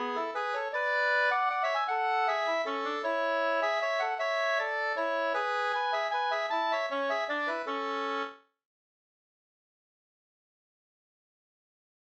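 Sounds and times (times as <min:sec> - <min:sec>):
bridal waltz music: 0:00.0 - 0:08.3.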